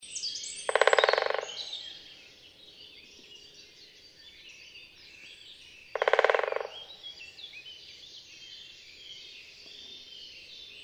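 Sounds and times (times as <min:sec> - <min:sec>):
great spotted woodpecker drumming: 0:00.7 - 0:01.7, 0:06.0 - 0:06.9.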